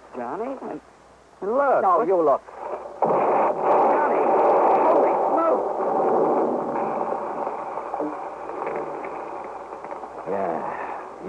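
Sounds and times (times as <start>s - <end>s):
speech: 0.2s - 3.2s
bomb explosion radio drama sound effect: 2.6s - 11.2s.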